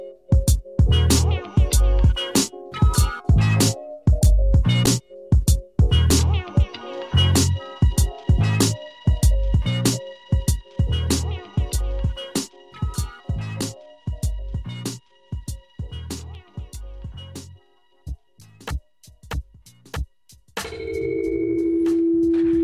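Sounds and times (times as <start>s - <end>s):
rhythmic beat-driven music: 0.0s - 22.6s
telephone ringing for an incoming call: 20.7s - 22.5s.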